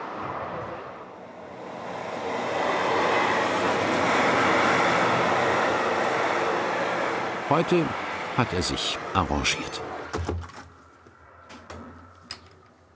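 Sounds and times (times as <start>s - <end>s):
freight train passing: 0.0s - 10.1s
speech: 7.5s - 10.5s.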